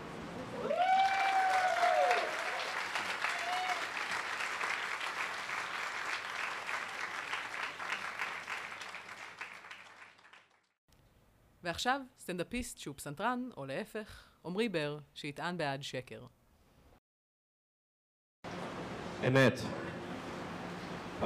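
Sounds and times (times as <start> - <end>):
audience applause: 0.6 - 10.7
speech: 11.7 - 16.4, 19.2 - 19.8.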